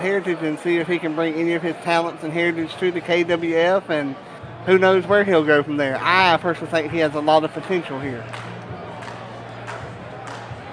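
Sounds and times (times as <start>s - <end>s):
speech: 0.0s - 8.5s
arena crowd chatter and murmuring: 0.0s - 10.7s
large arena crowd clapping in unison: 8.2s - 10.7s.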